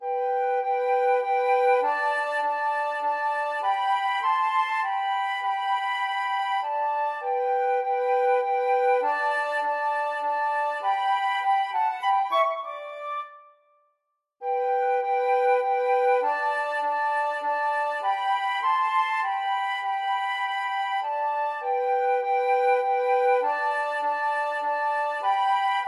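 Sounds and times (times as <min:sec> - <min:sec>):
flute duet: 0:00.0 - 0:13.8, 0:14.4 - 0:25.8.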